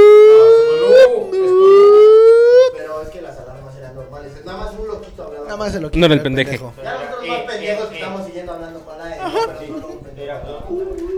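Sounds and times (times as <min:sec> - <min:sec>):
voice imitating asylum alarm siren: 0:00.0 - 0:02.8
laughter: 0:00.0 - 0:03.0, 0:05.5 - 0:11.1
speech: 0:05.7 - 0:11.0.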